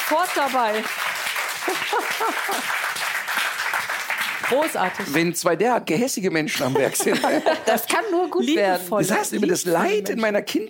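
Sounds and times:
applause: 0.0s - 5.4s
speech: 0.1s - 3.1s, 4.4s - 10.6s
laughter: 1.6s - 2.9s, 6.4s - 10.0s.

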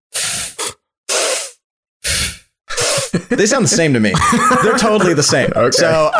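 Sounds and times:
voice imitating sniffing: 0.1s - 3.2s
laughter: 3.0s - 6.1s
speech: 3.1s - 6.1s.

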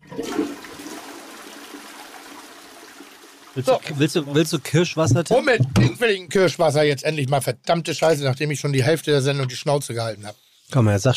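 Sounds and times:
toilet flushing: 0.0s - 5.7s
speech: 3.6s - 11.1s.

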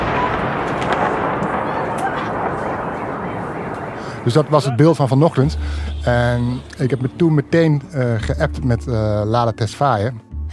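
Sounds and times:
machine gun fire at a drone: 0.0s - 4.4s
speech: 4.2s - 10.5s.

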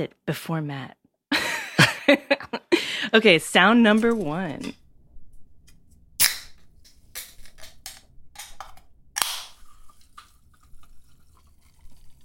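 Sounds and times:
speech: 0.0s - 1.0s, 2.1s - 4.8s
soda can opened: 6.2s - 12.2s
soda poured into cup: 9.5s - 12.2s.

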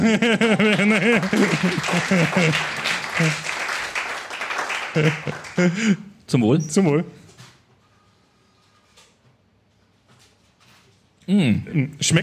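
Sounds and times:
speech: 0.0s - 3.5s, 5.0s - 7.2s, 11.3s - 12.2s
people laughing: 0.0s - 3.9s, 4.6s - 6.0s
small group clapping: 0.5s - 5.8s.

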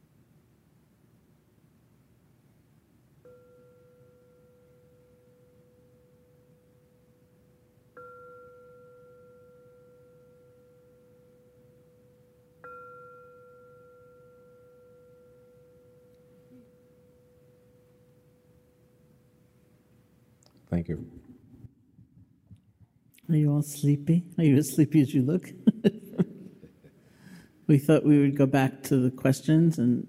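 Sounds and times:
meditation bell ringing: 3.2s - 19.5s
speech: 20.7s - 21.4s, 23.3s - 26.0s, 27.7s - 30.0s
laughter: 25.4s - 27.1s.

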